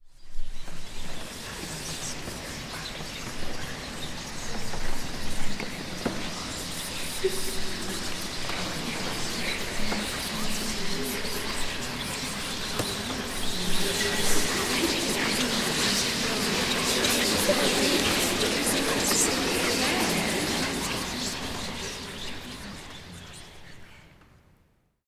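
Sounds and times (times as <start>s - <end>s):
chatter: 1.3s - 24.1s
laughter: 12.8s - 23.2s.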